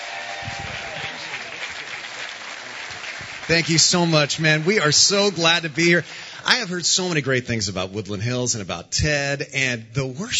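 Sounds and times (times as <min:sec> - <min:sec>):
church congregation applause welcoming guests: 0:00.0 - 0:06.8
speech: 0:00.4 - 0:00.8, 0:03.5 - 0:10.3.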